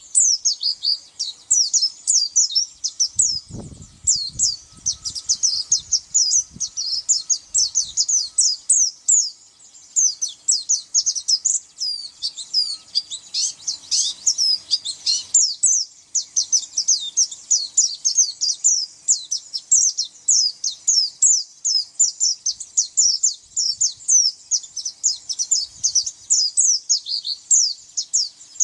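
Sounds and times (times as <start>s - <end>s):
white-eye twittering: 0.0s - 28.6s.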